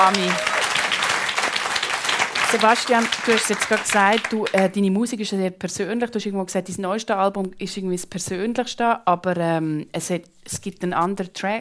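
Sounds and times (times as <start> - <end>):
speech: 0.0 - 0.5, 2.5 - 11.6
audience clapping: 0.0 - 4.8.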